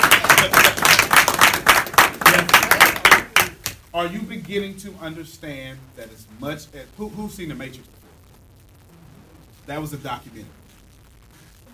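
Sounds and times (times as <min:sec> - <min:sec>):
audience clapping: 0:00.0 - 0:03.9
speech: 0:04.0 - 0:08.0, 0:09.6 - 0:10.6.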